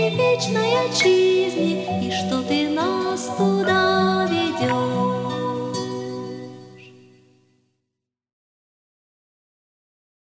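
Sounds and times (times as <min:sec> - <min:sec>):
children's hymn of thanks: 0:00.0 - 0:06.8.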